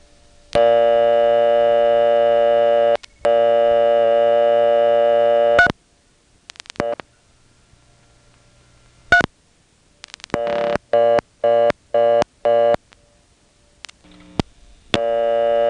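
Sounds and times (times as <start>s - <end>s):
reorder tone bursts from an old telephone exchange: 0.0s - 5.8s, 10.0s - 13.0s, 13.8s - 15.6s
long buzzy tones from an old telephone exchange with selectors: 0.6s - 5.7s, 10.3s - 12.8s, 14.2s - 15.6s.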